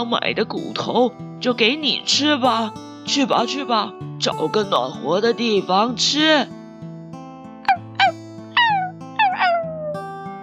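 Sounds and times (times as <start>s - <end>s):
speech: 0.0s - 6.6s
soft music: 0.0s - 10.4s
small dog barking: 7.7s - 10.0s.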